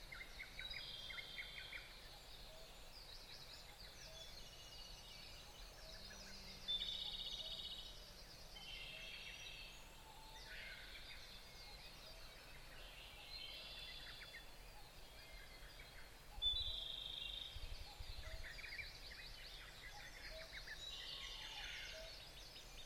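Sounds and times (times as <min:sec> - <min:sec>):
bird chorus: 0:00.0 - 0:22.8.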